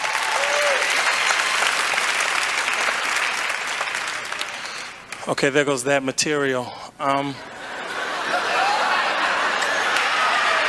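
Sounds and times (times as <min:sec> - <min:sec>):
audience applause and hand clapping: 0:00.0 - 0:05.0, 0:08.3 - 0:10.6
speech: 0:05.3 - 0:07.6
laughter: 0:07.4 - 0:10.6.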